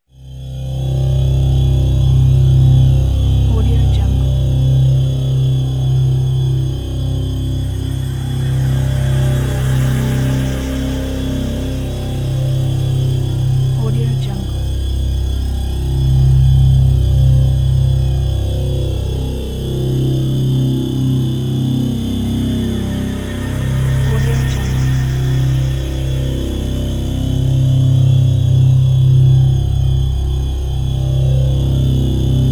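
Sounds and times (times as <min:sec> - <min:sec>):
horror atmosphere: 0:00.2 - 0:32.4.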